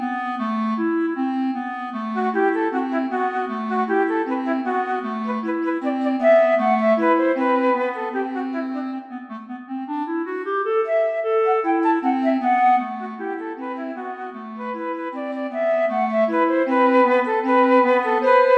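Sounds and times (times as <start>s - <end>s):
clarinet: 0.0s - 18.5s
flute: 0.0s - 18.5s.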